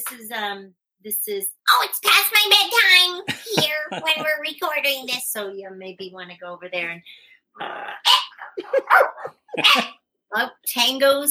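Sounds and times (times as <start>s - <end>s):
speech: 0.0s - 11.3s
laughter: 3.2s - 4.5s, 8.3s - 9.9s
pet dog barking: 8.1s - 9.9s.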